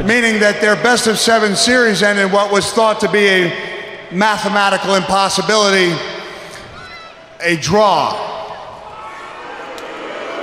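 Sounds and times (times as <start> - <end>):
speech: 0.0 - 6.1, 7.4 - 8.3
large crowd booing: 6.7 - 10.4.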